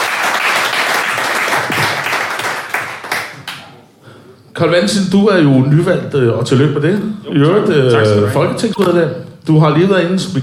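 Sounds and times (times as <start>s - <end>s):
audience applause welcoming a newly elected member of parliament: 0.0s - 3.6s
speech: 4.6s - 10.4s.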